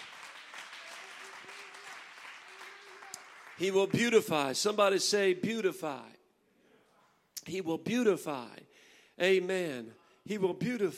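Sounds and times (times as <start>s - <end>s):
crowd clapping hands: 0.0s - 4.5s
speech: 3.6s - 6.2s, 7.5s - 10.9s.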